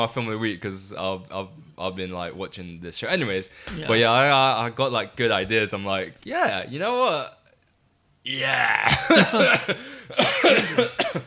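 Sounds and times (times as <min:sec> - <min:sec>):
speech: 0:00.0 - 0:07.4, 0:08.2 - 0:11.2
raspy coughing fit: 0:08.6 - 0:11.2.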